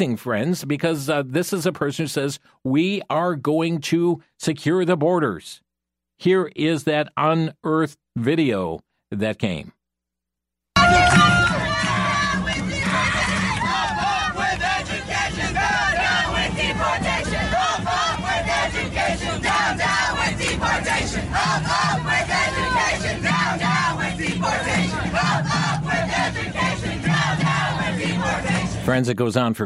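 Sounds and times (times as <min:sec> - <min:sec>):
speech: 0:00.0 - 0:05.6, 0:06.2 - 0:09.8, 0:28.9 - 0:29.6
crowd chanting protest slogans at a rally: 0:10.8 - 0:28.9.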